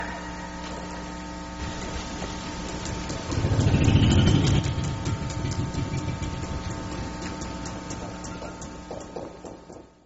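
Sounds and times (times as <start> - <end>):
biophony: 2.6 - 8.8.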